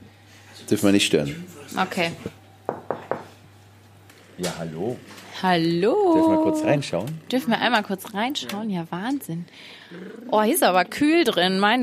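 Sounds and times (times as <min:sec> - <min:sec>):
speech: 0:00.6 - 0:02.4, 0:04.4 - 0:11.8
knocking on a studio door: 0:02.7 - 0:03.3.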